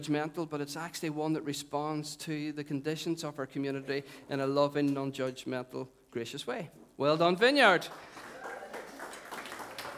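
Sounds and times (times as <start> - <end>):
speech: 0.0 - 8.2
audience clapping: 7.7 - 9.9.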